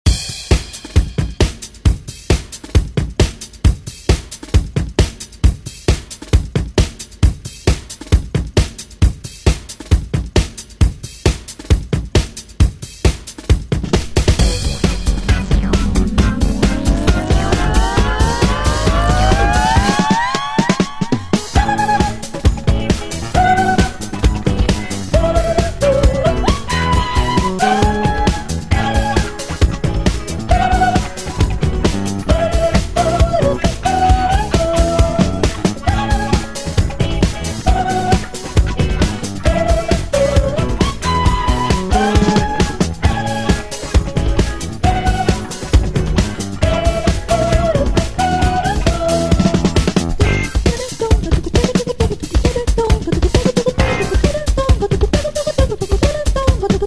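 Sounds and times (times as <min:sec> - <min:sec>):
70s drum beat: 0:00.1 - 0:56.8.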